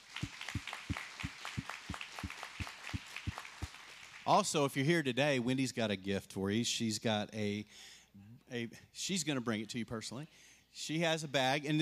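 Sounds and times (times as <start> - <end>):
audience hand clapping: 0.0 - 4.4
speech: 4.3 - 11.8.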